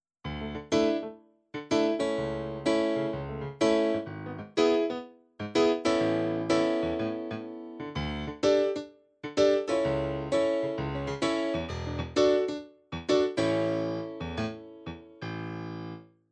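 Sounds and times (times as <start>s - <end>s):
NumaStage stage grand piano: 0.3s - 16.1s.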